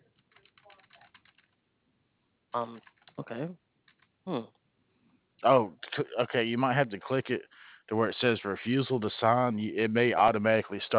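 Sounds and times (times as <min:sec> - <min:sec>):
computer keyboard typing: 0:00.0 - 0:01.6, 0:02.8 - 0:03.2, 0:03.8 - 0:04.1
speech: 0:02.5 - 0:03.6, 0:04.2 - 0:04.6, 0:05.4 - 0:10.9.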